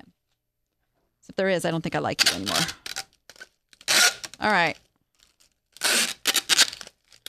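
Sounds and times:
speech: 1.3 - 2.8, 4.4 - 4.8
tape ripping off a tape dispenser: 2.2 - 4.4, 5.2 - 7.2.

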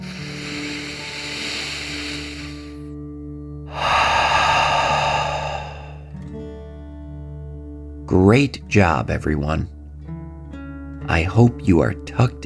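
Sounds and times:
slow deep breath in and out during a relaxation exercise: 0.0 - 2.9, 3.7 - 6.2
soft sustained music: 0.0 - 12.4
speech: 8.2 - 9.8, 11.2 - 12.4.

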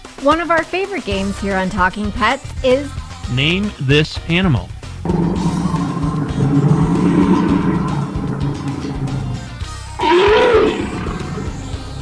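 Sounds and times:
speech: 0.3 - 5.4
bear roaring: 5.1 - 12.0.

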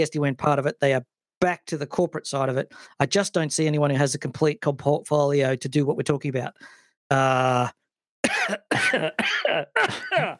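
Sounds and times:
speech: 0.0 - 10.3
man coughing and choking: 8.2 - 10.3
man groaning: 9.4 - 10.3.

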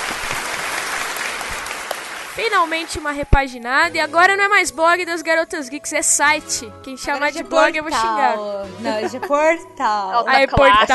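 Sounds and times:
applause: 0.0 - 3.0
speech: 2.4 - 10.9
laughter: 8.7 - 9.6.

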